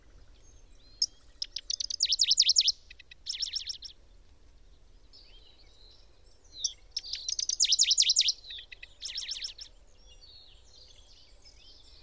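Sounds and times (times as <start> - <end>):
bird calling: 1.0 - 3.9, 6.6 - 9.7.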